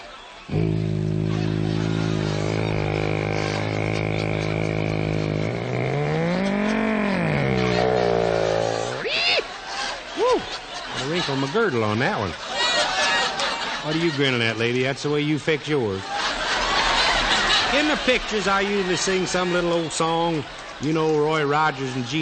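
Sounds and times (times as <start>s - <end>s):
person imitating an airplane engine in a power dive: 0.5s - 9.1s
laughter: 0.5s - 21.5s
speech: 11.2s - 12.5s, 13.8s - 16.2s, 17.7s - 22.1s.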